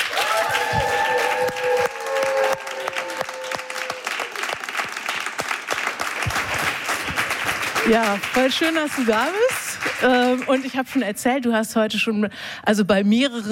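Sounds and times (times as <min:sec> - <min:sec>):
roaring applause from audience: 0:00.0 - 0:10.8
speech: 0:07.9 - 0:13.5.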